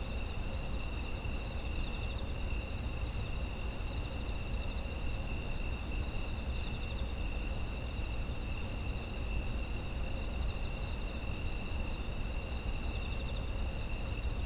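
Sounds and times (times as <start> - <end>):
insects trilling: 0.1 - 14.4.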